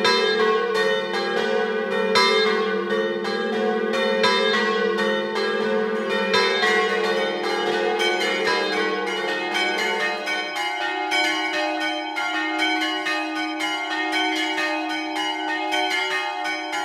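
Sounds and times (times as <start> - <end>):
bells ringing: 0.0 - 16.8.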